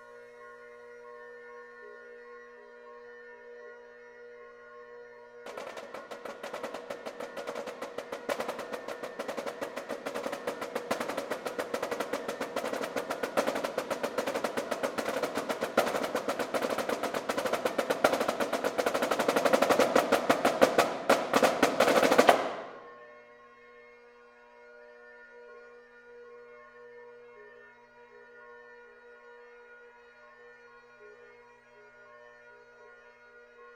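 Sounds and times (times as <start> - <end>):
bagpipes playing: 5.5 - 22.6.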